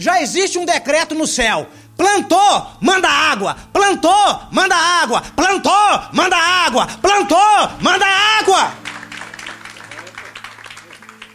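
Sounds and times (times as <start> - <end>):
speech: 0.0 - 8.8
applause: 8.4 - 11.3.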